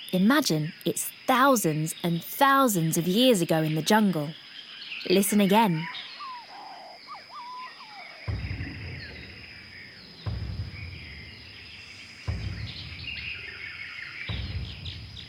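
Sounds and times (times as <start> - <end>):
high insect drone: 0.0 - 15.2
speech: 0.1 - 4.4, 5.0 - 6.0
chirping whistling bird calls in a jungle: 1.6 - 15.2
deep heavy thuds: 8.2 - 15.2.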